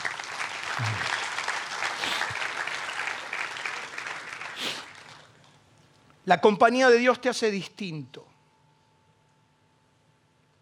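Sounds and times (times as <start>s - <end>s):
audience applause: 0.0s - 5.3s
speech: 0.8s - 1.2s, 6.3s - 8.3s.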